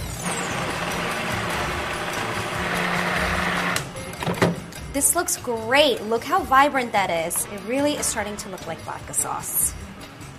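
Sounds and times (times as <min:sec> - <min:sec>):
immersion blender churning through thick sauce: 0:00.2 - 0:03.9
speech: 0:05.0 - 0:09.9.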